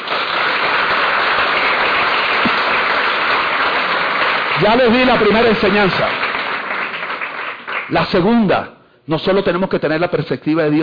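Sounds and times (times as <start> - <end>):
audience applause: 0.0 - 8.3
speech: 4.6 - 6.2, 7.9 - 10.8.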